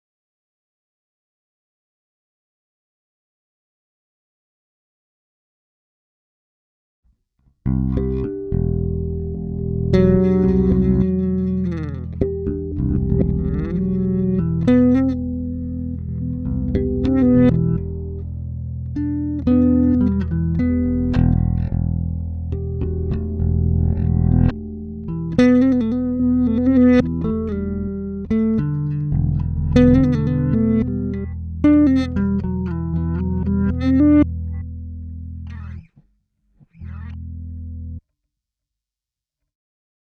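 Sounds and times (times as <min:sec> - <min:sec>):
reversed bass: 0:07.7 - 0:35.8, 0:36.8 - 0:38.0.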